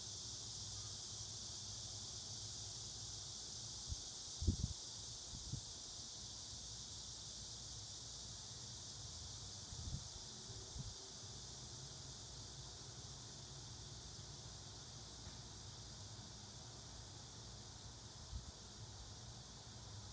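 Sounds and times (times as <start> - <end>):
cicada buzzing: 0.0 - 20.1.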